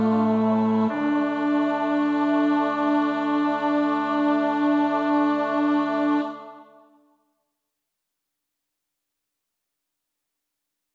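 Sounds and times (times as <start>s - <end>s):
bass voice singing a hymn: 0.0s - 6.4s.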